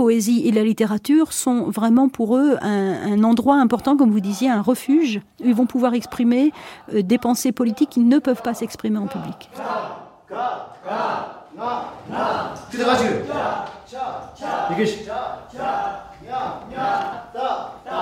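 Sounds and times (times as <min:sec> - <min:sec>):
speech: 0:00.0 - 0:18.0
rapped vocals reciting the Tibetan alphabet: 0:05.4 - 0:18.0.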